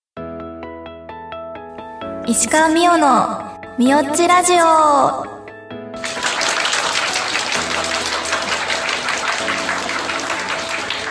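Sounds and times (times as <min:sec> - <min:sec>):
speech: 0:02.3 - 0:05.3
audience applause at live recording: 0:06.0 - 0:11.0.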